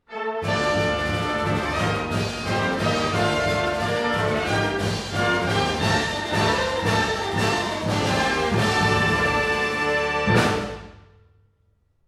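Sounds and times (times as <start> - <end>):
fanfare: 0.1 - 11.0.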